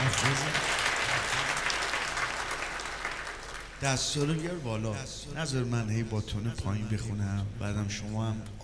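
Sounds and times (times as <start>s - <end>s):
audience clapping on request: 0.0s - 4.0s
speech: 3.8s - 8.6s.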